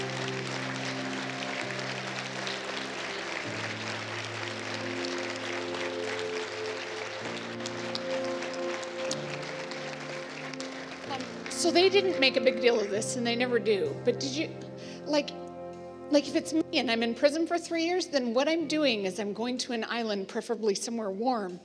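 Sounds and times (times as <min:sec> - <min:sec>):
audience applauding: 0:00.0 - 0:13.1
speech: 0:11.7 - 0:15.4, 0:16.1 - 0:21.6.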